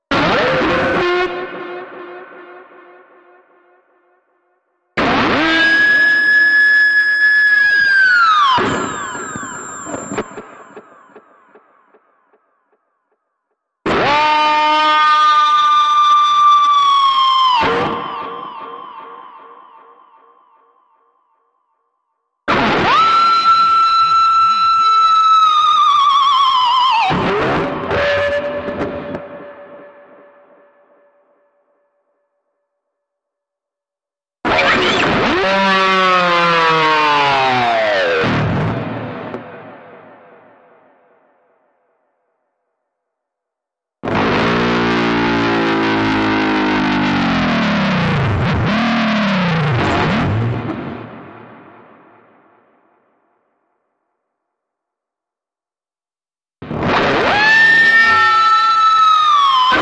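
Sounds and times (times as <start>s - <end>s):
screaming guitar: 0.1s - 2.5s, 5.0s - 11.6s, 13.9s - 20.8s, 22.5s - 31.0s, 34.5s - 39.8s, 44.0s - 51.2s, 56.7s - 59.8s.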